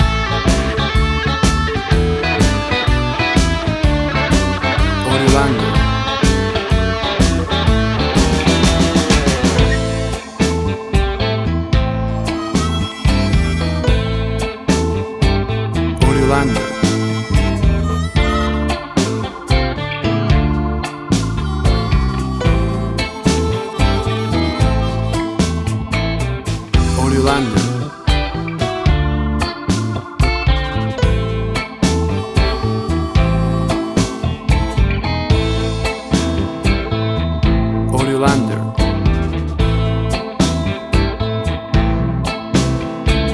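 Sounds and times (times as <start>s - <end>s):
blues tango music: 0.0s - 43.3s.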